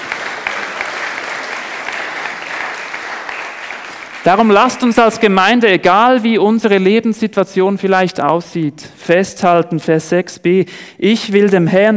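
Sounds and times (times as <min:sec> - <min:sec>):
audience applause: 0:00.0 - 0:04.9
speech: 0:04.2 - 0:11.9.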